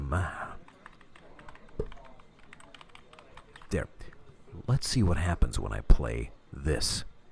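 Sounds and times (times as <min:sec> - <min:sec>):
speech: 0:00.1 - 0:00.4, 0:03.7 - 0:04.0, 0:04.6 - 0:07.1
laptop keyboard typing in a diner: 0:00.6 - 0:03.8.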